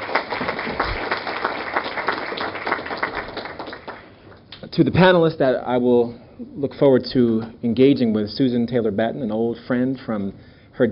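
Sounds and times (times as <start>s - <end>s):
audience applause: 0.0s - 4.2s
speech: 4.8s - 10.9s.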